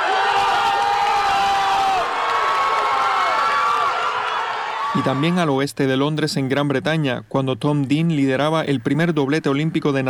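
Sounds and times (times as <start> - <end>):
crowd of fans cheering in a gym: 0.0 - 5.6
speech: 5.0 - 10.0.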